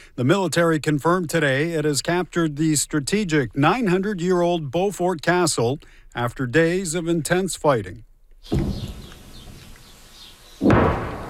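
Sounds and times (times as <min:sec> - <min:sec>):
speech: 0:00.2 - 0:09.0
distant explosions echoing: 0:08.5 - 0:09.6, 0:10.6 - 0:11.2.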